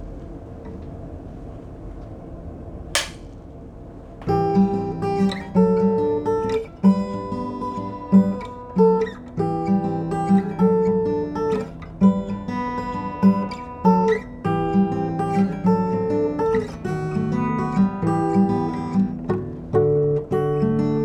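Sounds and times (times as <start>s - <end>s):
acoustic guitar: 4.3s - 21.0s.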